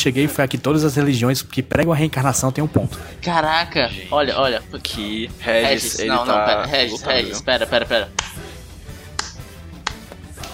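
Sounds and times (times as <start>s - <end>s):
speech: 0.0s - 8.4s
laughter: 5.4s - 8.4s
hand claps: 8.1s - 10.5s.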